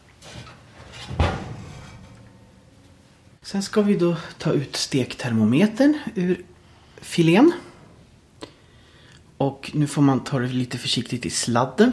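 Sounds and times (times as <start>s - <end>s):
baking dish lifted out with soft scraping and shuffling: 0.0s - 3.4s
oven door opening: 1.0s - 3.0s
speech: 3.4s - 7.6s, 9.4s - 11.9s.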